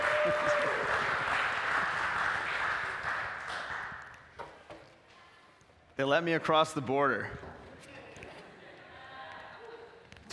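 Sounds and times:
audience applause welcoming a guest speaker on Canada Day: 0.0 - 4.1
speech: 0.2 - 0.6, 6.0 - 7.4.

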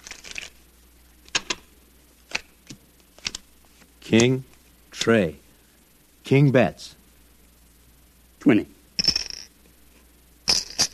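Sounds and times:
playing cards rustling while dealt for stud poker: 0.0 - 0.6
speech: 4.1 - 5.4, 6.3 - 7.0, 8.4 - 8.8.

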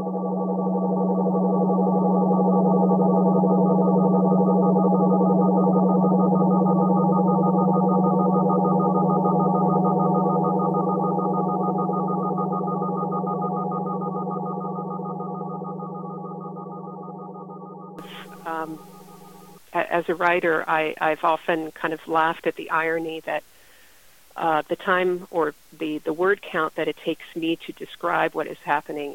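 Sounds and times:
drone music with a low buzzing chord of stacked harmonic tones: 0.0 - 19.6
speech: 20.0 - 23.5, 24.4 - 29.1.

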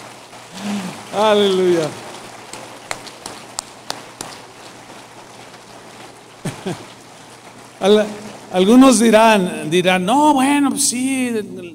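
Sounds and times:
audience applause: 0.0 - 8.0
speech: 1.1 - 2.0, 6.6 - 6.9, 7.8 - 11.7
laughter: 6.4 - 7.0.

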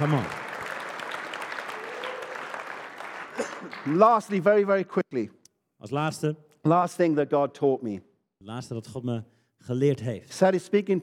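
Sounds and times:
speech: 0.0 - 0.4, 3.6 - 11.0
audience clapping: 0.0 - 4.8.

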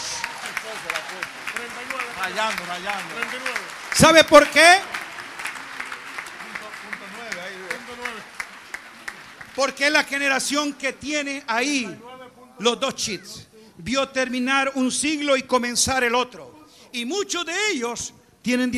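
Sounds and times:
audience applause: 0.0 - 10.8
speech: 0.7 - 5.0, 9.6 - 18.7.

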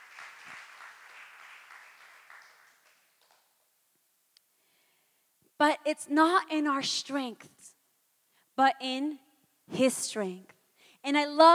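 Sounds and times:
audience round of applause: 0.0 - 3.4
speech: 5.6 - 7.6, 8.6 - 11.5.

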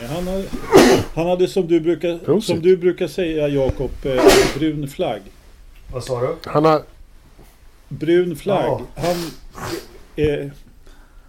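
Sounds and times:
speech: 0.0 - 6.9, 7.9 - 10.7
sneeze: 0.5 - 1.2, 4.2 - 4.7, 9.0 - 10.0.

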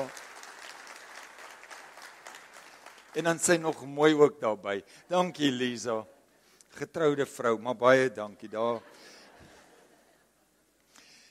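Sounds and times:
audience applauding: 0.0 - 4.2
speech: 3.1 - 6.2, 6.8 - 9.1.

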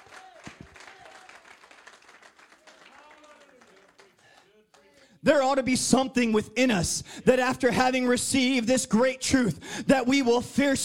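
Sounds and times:
audience clapping: 0.0 - 5.2
speech: 5.2 - 10.8.

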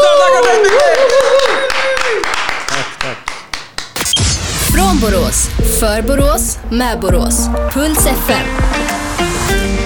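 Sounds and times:
applause: 0.0 - 4.0
speech: 5.3 - 9.7.

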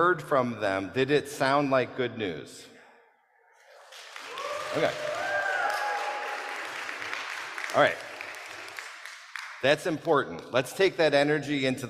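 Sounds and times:
speech: 0.0 - 2.7, 4.7 - 5.2, 7.7 - 8.1, 9.6 - 11.8
crowd rousing applause: 3.6 - 9.7.

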